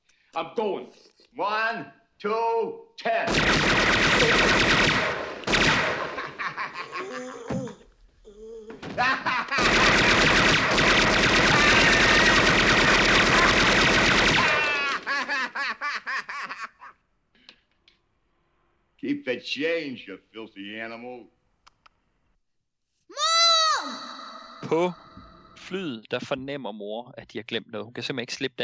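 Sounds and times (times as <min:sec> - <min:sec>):
speech: 0:00.4 - 0:05.2, 0:06.8 - 0:07.7, 0:08.4 - 0:10.2, 0:19.1 - 0:21.4, 0:24.6 - 0:28.6
movie-style machine-gun fire: 0:03.3 - 0:06.8, 0:09.5 - 0:15.3
laughter: 0:05.9 - 0:07.8, 0:08.8 - 0:10.2, 0:10.9 - 0:17.0.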